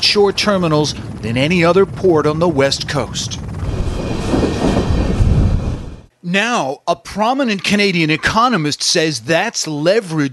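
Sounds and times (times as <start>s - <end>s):
speech: 0.1s - 3.5s, 6.3s - 10.3s
coal train passing on rails: 3.6s - 6.1s.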